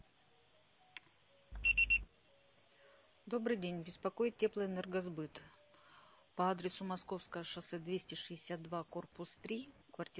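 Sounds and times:
voicemail tone beeps: 0:01.6 - 0:02.1
speech: 0:03.3 - 0:05.6, 0:06.4 - 0:10.1.

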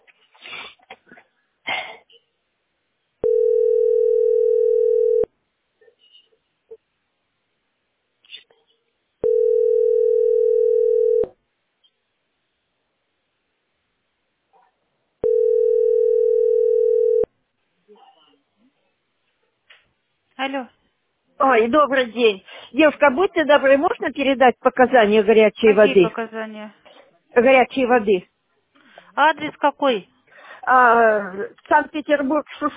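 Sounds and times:
telephone ringing tone: 0:03.2 - 0:05.3, 0:09.2 - 0:11.4, 0:15.2 - 0:17.3
speech: 0:20.5 - 0:20.7, 0:21.5 - 0:26.8, 0:27.4 - 0:28.3, 0:29.2 - 0:32.7.

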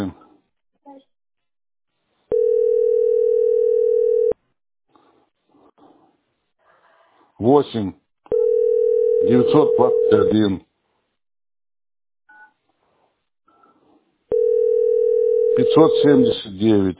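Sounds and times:
telephone dial tone: 0:02.3 - 0:04.4, 0:08.3 - 0:10.4, 0:14.3 - 0:16.2
speech: 0:07.4 - 0:08.0, 0:09.2 - 0:10.7, 0:15.6 - 0:16.9.

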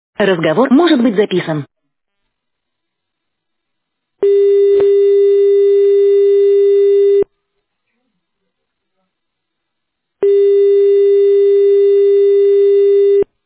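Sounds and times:
speech: 0:00.2 - 0:01.7, 0:04.2 - 0:05.0
telephone ringback tone: 0:04.2 - 0:07.2, 0:10.2 - 0:13.3.

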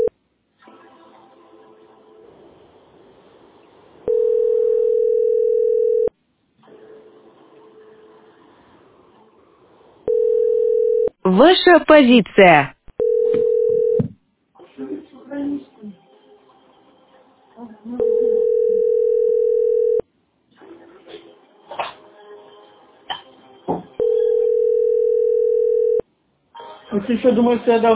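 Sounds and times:
telephone dial tone: 0:04.1 - 0:06.1, 0:10.1 - 0:11.1, 0:13.0 - 0:14.0, 0:18.0 - 0:20.0, 0:24.0 - 0:26.0
speech: 0:11.3 - 0:12.8, 0:27.1 - 0:27.9.

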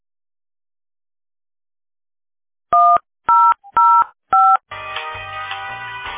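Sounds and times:
telephone keypad tones dialing an extension number: 0:02.8 - 0:04.6.

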